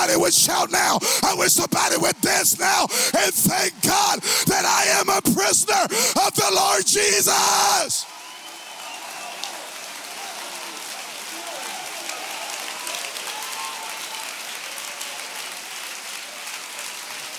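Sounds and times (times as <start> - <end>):
speech: 0.1 - 8.2
audience clapping: 8.0 - 17.3.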